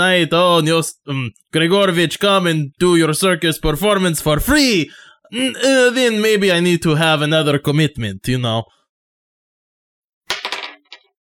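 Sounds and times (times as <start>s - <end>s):
speech: 0.0s - 8.8s
dice rolling across a surface: 10.3s - 11.2s.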